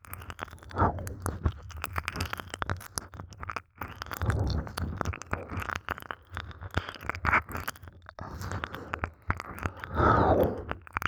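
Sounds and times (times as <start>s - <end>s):
ear licking: 0.6s - 2.2s, 4.0s - 6.0s, 8.2s - 10.9s.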